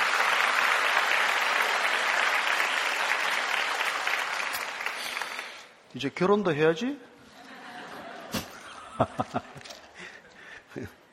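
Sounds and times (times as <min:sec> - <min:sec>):
audience applause: 0:00.0 - 0:05.7
speech: 0:06.0 - 0:07.1, 0:09.0 - 0:09.8, 0:10.8 - 0:11.0
laughter: 0:07.3 - 0:10.2.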